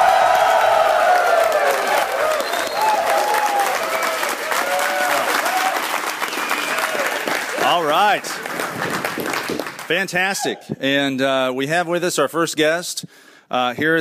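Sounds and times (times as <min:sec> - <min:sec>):
scattered cheers: 0:00.0 - 0:08.2
live studio audience applauding at the Triangle Fraternity National Convention: 0:00.0 - 0:10.1
speech: 0:07.8 - 0:08.4, 0:09.9 - 0:13.9.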